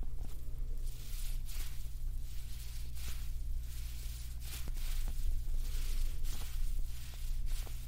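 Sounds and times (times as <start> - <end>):
ASMR touching a makeup puff: 0.2 - 7.8.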